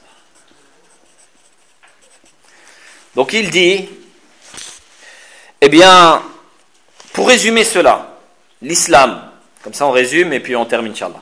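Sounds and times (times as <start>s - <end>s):
pencil writing in a book: 0.0s - 2.5s
speech: 3.2s - 4.0s, 5.7s - 6.3s, 7.3s - 11.1s.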